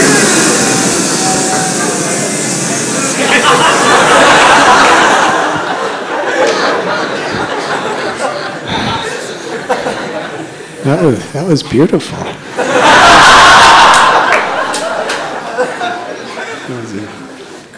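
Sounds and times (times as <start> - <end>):
crowd imitating buzzing bees: 0.0 - 9.3
scattered murmurs and chatter: 0.0 - 12.9, 14.8 - 17.7
laughter: 0.1 - 10.8, 12.4 - 16.9
speech: 10.9 - 12.4.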